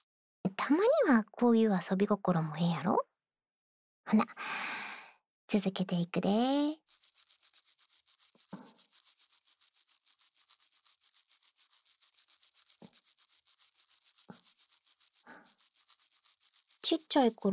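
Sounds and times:
speech: 0.4s - 3.1s, 4.1s - 4.8s, 5.5s - 7.0s, 16.9s - 17.5s
toothbrush brushing another person's teeth: 6.9s - 17.5s.

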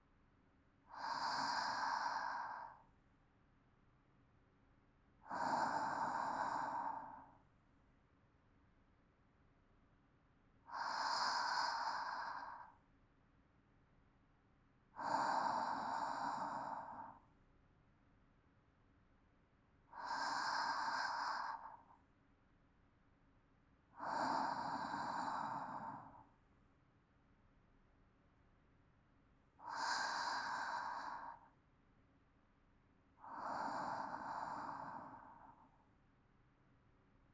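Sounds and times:
calm sleep breathing: 0.8s - 3.0s, 5.2s - 7.5s, 10.7s - 12.8s, 15.0s - 17.4s, 19.8s - 22.1s, 23.9s - 26.4s, 29.6s - 31.6s, 33.2s - 35.9s.

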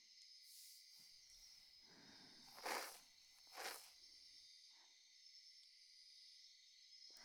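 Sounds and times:
ear cleaning sounds in the left ear: 2.5s - 3.9s.

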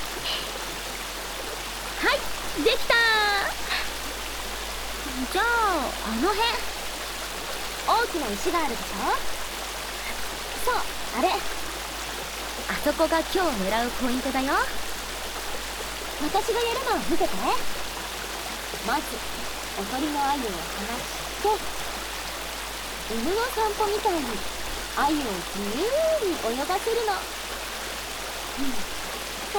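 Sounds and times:
river flowing: 0.0s - 29.5s.

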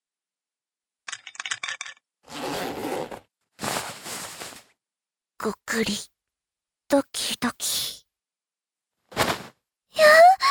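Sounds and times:
trousers unzipped and pulled down: 2.3s - 4.3s
speech: 5.4s - 6.1s, 6.9s - 7.8s.

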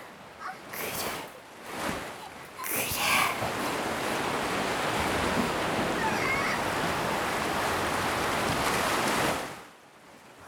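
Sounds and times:
large ocean waves crashing: 0.0s - 9.6s.

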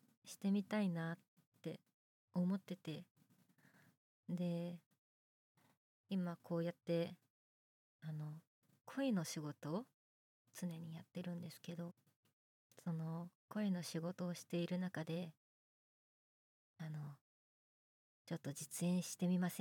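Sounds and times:
boyish new female voice actress performing: 0.3s - 1.8s, 2.4s - 3.1s, 4.3s - 4.8s, 6.1s - 7.2s, 8.0s - 9.9s, 10.6s - 11.9s, 12.8s - 15.4s, 18.3s - 19.5s.

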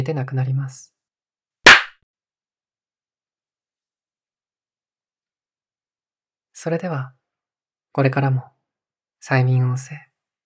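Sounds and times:
speech: 0.0s - 1.0s, 6.6s - 7.2s, 7.9s - 8.5s, 9.2s - 10.1s
hand clap to wake a listener from hypnosis: 1.7s - 1.9s.

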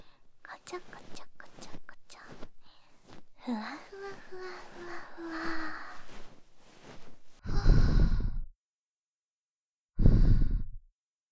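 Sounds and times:
soft breathy whispering: 0.0s - 8.4s
sudden breaths blown by an ASMR speaker: 0.0s - 8.4s
speech: 0.6s - 2.4s, 3.4s - 5.6s.

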